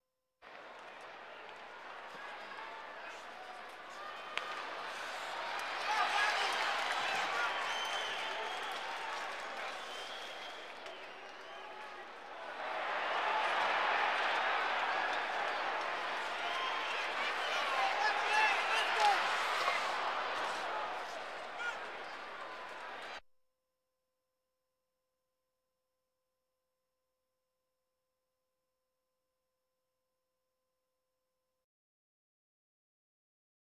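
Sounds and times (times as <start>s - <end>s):
sports crowd: 0.4s - 23.2s.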